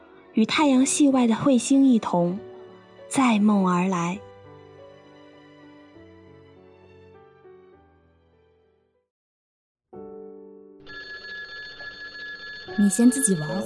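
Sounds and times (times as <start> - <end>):
speech: 0.4 - 2.5, 3.1 - 4.3, 12.8 - 13.6
telephone ringing: 10.9 - 13.6.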